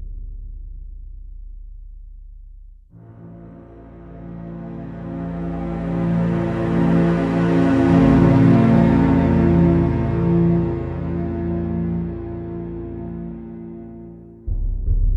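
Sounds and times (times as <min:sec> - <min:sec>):
dark dramatic orchestral strings: 0:03.0 - 0:15.0.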